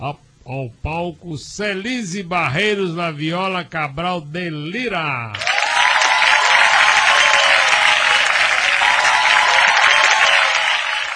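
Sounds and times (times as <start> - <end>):
speech: 0.0 - 5.6
extended applause: 5.4 - 11.1.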